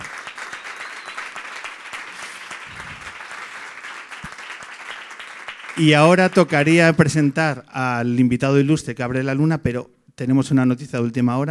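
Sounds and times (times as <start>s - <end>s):
audience applause: 0.0s - 7.3s
speech: 5.8s - 11.5s.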